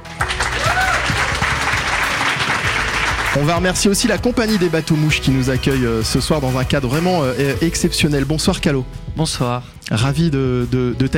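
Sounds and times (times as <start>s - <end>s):
audience applause: 0.0s - 3.6s
speech: 3.4s - 11.1s.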